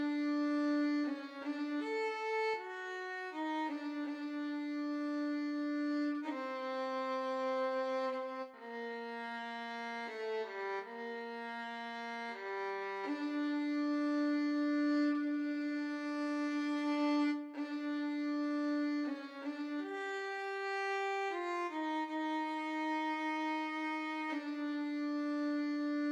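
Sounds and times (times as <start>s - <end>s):
violin and cello duet: 0.0s - 26.1s.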